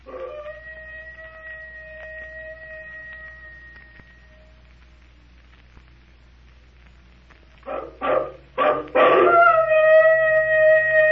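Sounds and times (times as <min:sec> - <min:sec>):
eerie werewolf-like howling: 0:00.0 - 0:04.6, 0:07.7 - 0:11.1.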